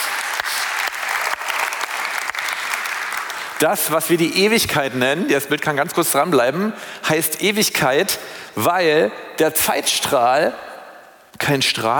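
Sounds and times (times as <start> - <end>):
audience applause: 0.0 - 3.7
speech: 3.6 - 10.7, 11.4 - 11.9.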